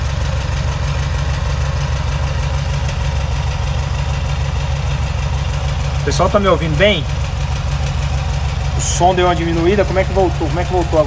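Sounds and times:
electric generator engine running: 0.0 - 11.0
speech: 6.1 - 7.2, 8.8 - 11.0.

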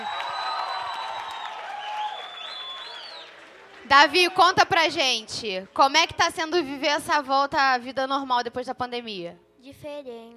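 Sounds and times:
cheers and whoops: 0.0 - 3.5
audience applause: 0.0 - 6.0
speech: 3.9 - 10.3.

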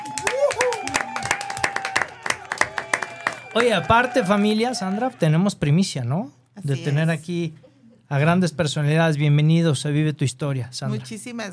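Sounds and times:
applause from a small group: 0.0 - 5.2
speech: 3.6 - 11.5.

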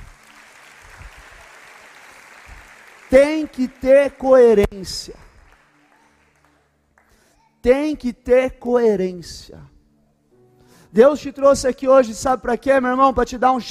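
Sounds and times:
applause: 0.0 - 7.3
speech: 3.1 - 5.2, 7.6 - 9.7, 10.9 - 13.6.

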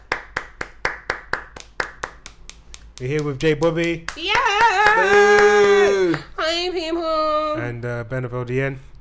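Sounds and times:
hand clapping: 0.0 - 6.4
speech: 3.0 - 8.9.

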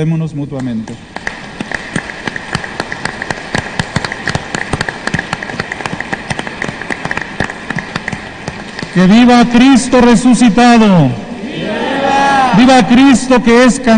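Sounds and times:
speech: 0.0 - 1.1, 9.0 - 11.2, 12.4 - 13.9
audience applause: 1.2 - 9.0.

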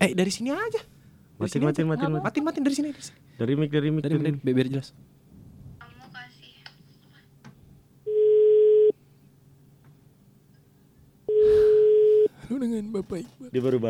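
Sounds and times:
speech: 0.0 - 5.2, 12.5 - 13.8
telephone ringback tone: 8.1 - 8.9, 11.3 - 12.3.

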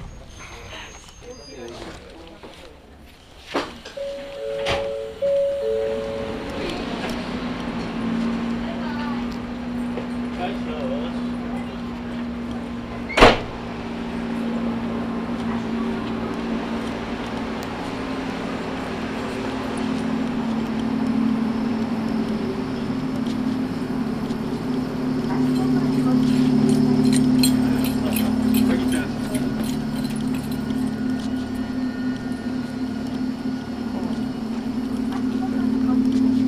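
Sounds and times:
mountain railway train running: 0.0 - 36.4
train door thud: 13.1 - 13.5.

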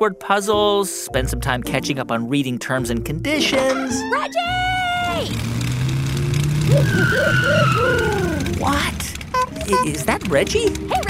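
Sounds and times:
speech: 0.0 - 5.7, 6.7 - 11.0
wobbling chirping revs: 3.8 - 11.0
cartoon pickup truck engine humming: 4.2 - 11.0.

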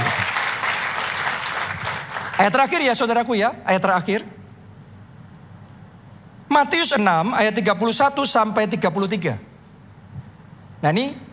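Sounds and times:
audience applause: 0.0 - 2.5
speech: 2.4 - 4.4, 6.6 - 9.5, 10.8 - 11.2.

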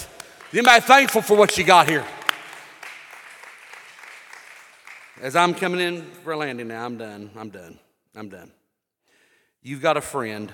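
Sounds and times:
crowd applause: 0.0 - 5.6
speech: 0.5 - 2.2, 5.2 - 8.6, 9.6 - 10.5.

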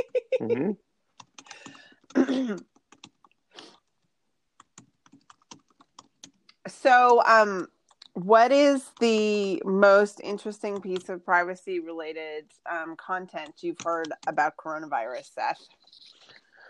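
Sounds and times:
speech: 0.0 - 0.9, 2.1 - 2.7, 6.8 - 16.2
typing on a computer keyboard: 1.1 - 9.4, 10.2 - 11.2, 13.3 - 16.4.

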